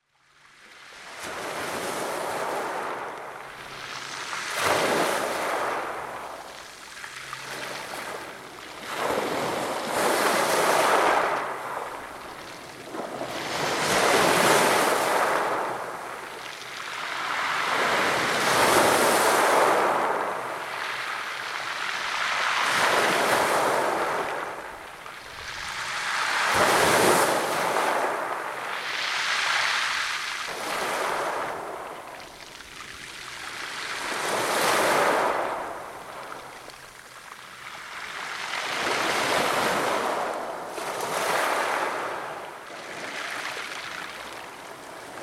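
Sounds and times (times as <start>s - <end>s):
ocean waves on a pebble beach: 0.5s - 45.2s.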